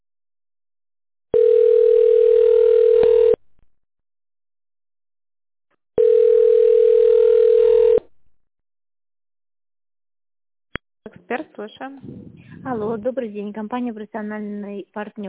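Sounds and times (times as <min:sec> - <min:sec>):
telephone ringback tone: 0:01.3 - 0:03.4, 0:06.0 - 0:08.1
speech: 0:11.6 - 0:15.2.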